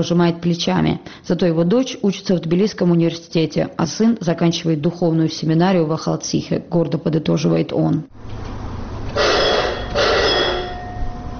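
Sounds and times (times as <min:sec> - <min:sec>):
speech: 0:00.0 - 0:08.5
low hum: 0:00.0 - 0:11.3
electric bell at a mine cable car station signalling departure: 0:09.1 - 0:11.3.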